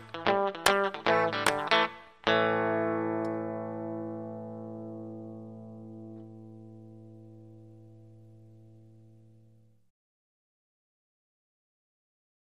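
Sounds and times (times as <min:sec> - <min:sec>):
Texas blues music: 0:00.0 - 0:09.4.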